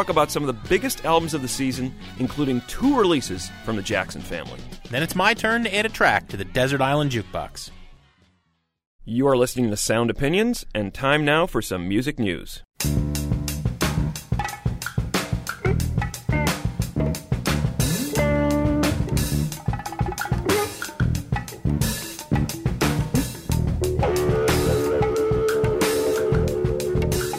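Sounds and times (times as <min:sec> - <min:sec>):
speech: 0:00.0 - 0:07.8, 0:09.0 - 0:13.3
early 1970s electric jazz-funk: 0:12.8 - 0:27.3.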